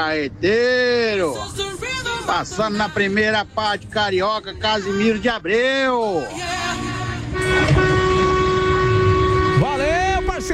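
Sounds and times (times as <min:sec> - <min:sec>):
speech: 0:00.0 - 0:06.9
vehicle horns blaring: 0:06.2 - 0:10.5.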